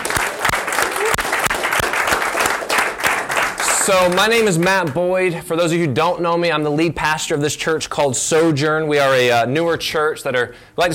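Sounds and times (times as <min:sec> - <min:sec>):
audience clapping hands: 0:00.0 - 0:05.0
speech: 0:03.9 - 0:10.9.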